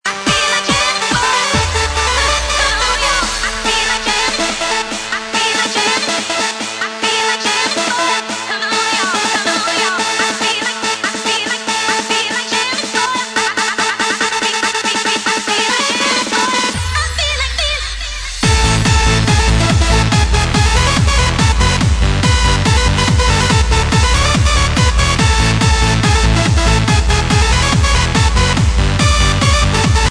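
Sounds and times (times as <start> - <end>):
remix music: 0.0 - 30.0.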